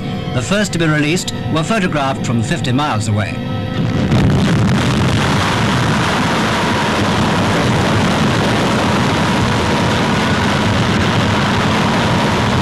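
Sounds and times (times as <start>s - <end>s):
thermonuclear weapon detonation roar: 0.0s - 12.5s
speech: 0.4s - 4.8s.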